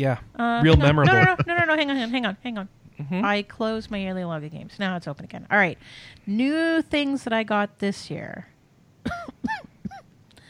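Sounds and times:
speech: 0.0s - 9.7s
laughter: 0.6s - 2.2s
person coughing: 0.7s - 1.7s, 9.0s - 10.1s.

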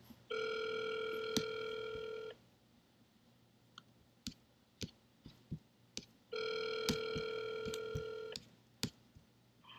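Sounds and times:
telephone ringing with bright layered electronic tones: 0.3s - 2.4s, 6.3s - 8.4s.

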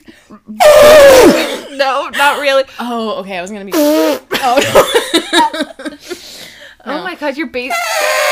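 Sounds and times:
speech: 0.3s - 8.3s
person imitating an elephant trumpet: 0.6s - 1.7s, 7.7s - 8.3s
laughter: 4.4s - 6.2s.

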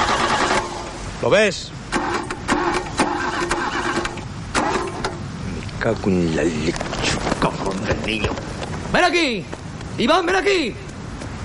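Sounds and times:
car engine being cranked by its starter: 0.0s - 1.0s, 1.9s - 5.3s
speech: 1.2s - 1.8s, 5.8s - 10.8s.

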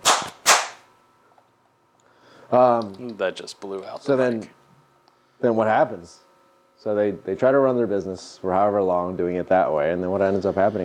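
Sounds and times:
hand clap: 0.0s - 0.8s
speech: 2.5s - 4.6s, 5.4s - 10.8s.

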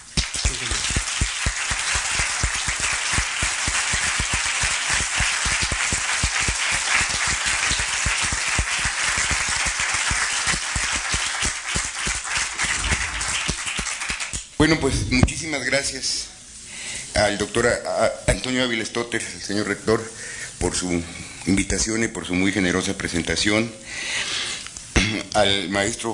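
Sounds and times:
audience applause: 0.0s - 14.4s
speech: 14.6s - 16.3s, 17.2s - 24.2s, 25.4s - 26.1s.

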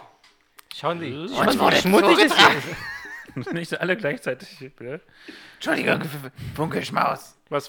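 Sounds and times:
speech: 0.8s - 7.6s
someone spitting something out: 1.3s - 2.6s
laughter: 1.3s - 3.8s.

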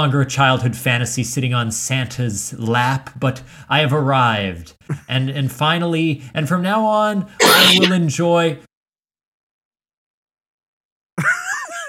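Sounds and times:
speech: 0.0s - 8.7s
man coughing: 7.4s - 7.9s.

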